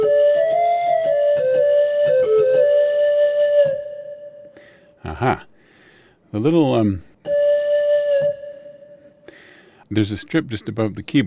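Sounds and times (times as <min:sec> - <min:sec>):
synthesized pan flute: 0:00.0 - 0:04.5, 0:07.3 - 0:09.3
speech: 0:05.2 - 0:05.5, 0:06.4 - 0:07.1, 0:09.9 - 0:11.2.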